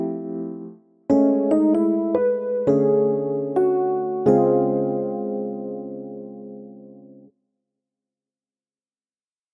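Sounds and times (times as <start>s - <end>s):
keyboard: 0.0s - 7.3s.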